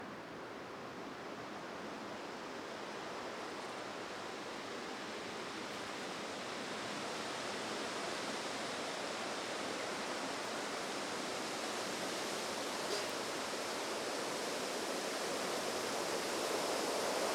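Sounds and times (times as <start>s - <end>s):
wind blowing through birches, beeches and spruces in a mixed forest in Norway: 0.2s - 17.3s.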